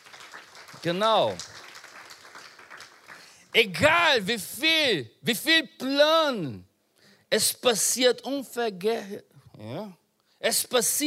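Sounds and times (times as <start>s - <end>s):
audience applause: 0.0s - 3.5s
speech: 0.8s - 1.5s, 3.6s - 6.7s, 7.3s - 11.0s.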